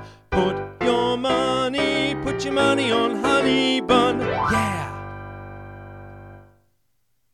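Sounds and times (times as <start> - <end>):
tenor singing: 0.3 - 5.6.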